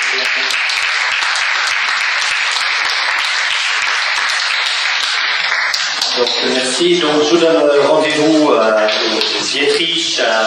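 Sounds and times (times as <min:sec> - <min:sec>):
audience applause: 0:00.0 - 0:07.5
speech: 0:00.2 - 0:00.8, 0:06.2 - 0:10.4.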